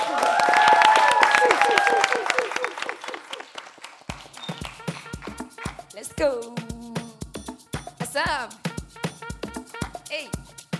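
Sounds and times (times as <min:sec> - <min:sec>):
audience applause: 0:00.0 - 0:05.3
speech: 0:06.2 - 0:06.6, 0:08.2 - 0:08.6.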